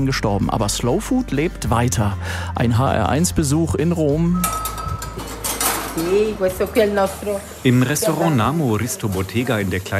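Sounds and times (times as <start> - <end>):
speech: 0.0 - 4.7, 6.0 - 9.9
cooking utensils, pots and cutlery clattering in Namo Risto Bottega kitchen, Tarquinia: 4.4 - 9.9.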